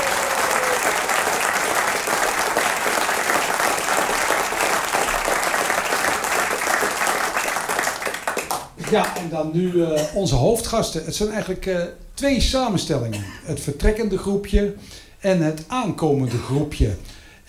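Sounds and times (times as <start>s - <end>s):
audience applause: 0.0s - 9.3s
speech: 8.9s - 17.4s.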